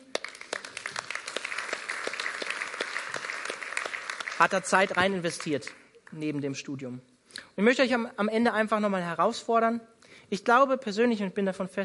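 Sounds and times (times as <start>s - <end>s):
audience applause: 0.0s - 5.8s
speech: 4.4s - 11.8s.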